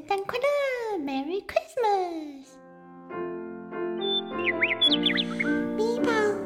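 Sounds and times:
speech: 0:00.1 - 0:01.7
bird chirping: 0:04.0 - 0:06.3.

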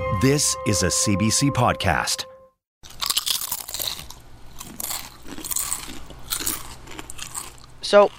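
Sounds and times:
speech: 0:00.2 - 0:02.3, 0:07.9 - 0:08.1
person chewing crunchy chips: 0:02.8 - 0:08.1.

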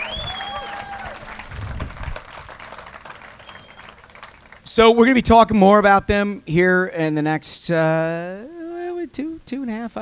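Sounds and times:
whistles and cheers: 0:00.0 - 0:01.4, 0:03.2 - 0:04.0
audience applause: 0:00.0 - 0:04.7
speech: 0:04.8 - 0:08.5, 0:09.1 - 0:10.0.

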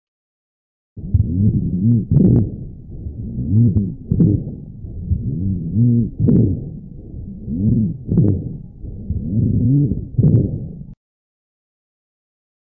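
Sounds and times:
rhonchi lung sounds through stethoscope: 0:01.0 - 0:11.0.

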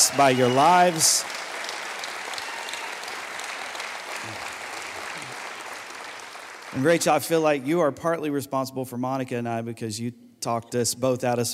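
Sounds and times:
River Valley Church congregation applauding its pastors: 0:00.0 - 0:07.6
speech: 0:00.1 - 0:01.4, 0:06.7 - 0:11.5.

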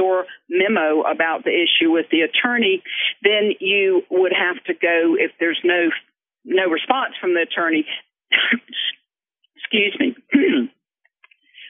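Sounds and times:
speech: 0:00.0 - 0:09.0, 0:09.7 - 0:10.8
man coughing and clearing throat while choking up: 0:10.4 - 0:10.7.

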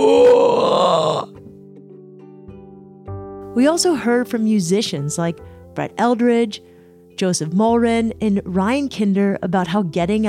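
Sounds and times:
person imitating a howler monkey: 0:00.0 - 0:01.3
speech: 0:03.6 - 0:10.2.

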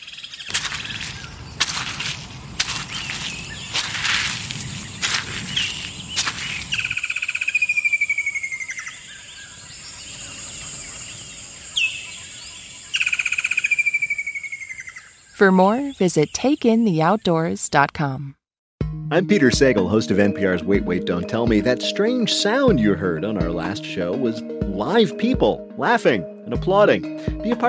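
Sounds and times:
crackling and snapping on a forest walk: 0:00.5 - 0:07.0
whistled bird calls: 0:04.6 - 0:16.4
speech: 0:15.4 - 0:18.4, 0:19.1 - 0:27.6.

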